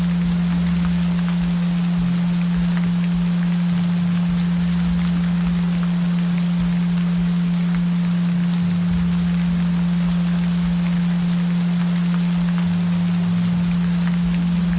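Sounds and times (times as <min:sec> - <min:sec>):
gentle rain: 0:00.0 - 0:14.7.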